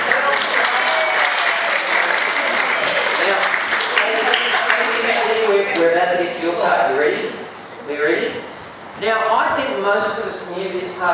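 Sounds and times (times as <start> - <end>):
crowd clapping: 0.0 - 5.9
faint murmur of voices: 0.0 - 11.1
speech: 9.9 - 11.1.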